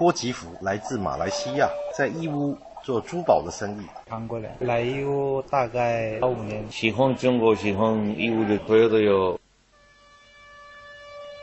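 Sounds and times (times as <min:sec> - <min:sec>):
speech: 0:00.0 - 0:09.4
train whistle: 0:01.3 - 0:02.2, 0:09.7 - 0:11.4.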